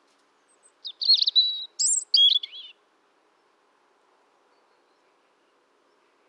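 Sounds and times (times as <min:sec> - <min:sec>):
European robin singing: 0:00.6 - 0:02.8.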